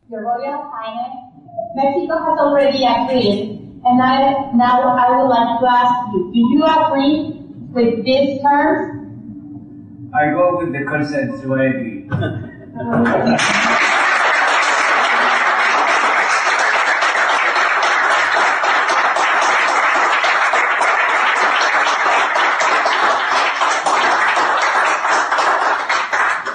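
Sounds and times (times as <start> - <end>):
speech: 0.1 - 9.0, 10.1 - 13.7
laughter: 10.2 - 16.1
applause: 12.9 - 26.5.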